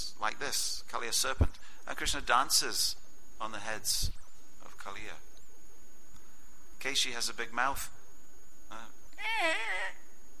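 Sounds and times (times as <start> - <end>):
speech: 0.2 - 4.2, 4.8 - 5.3, 6.8 - 8.0, 8.7 - 10.0
human voice imitating a horse whinny: 9.2 - 10.1.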